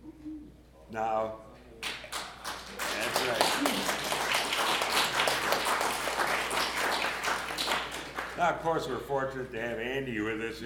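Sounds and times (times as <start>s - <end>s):
speech: 0.9s - 1.5s, 2.7s - 4.1s, 8.4s - 10.6s
crowd applause at an awards ceremony: 1.8s - 8.4s.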